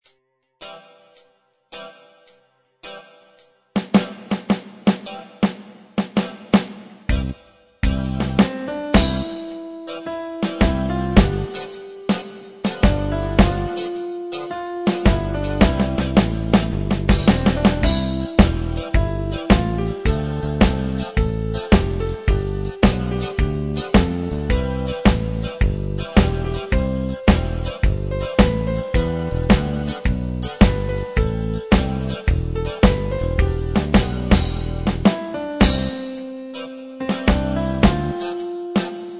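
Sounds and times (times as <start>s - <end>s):
rock and roll music: 3.8s - 39.1s.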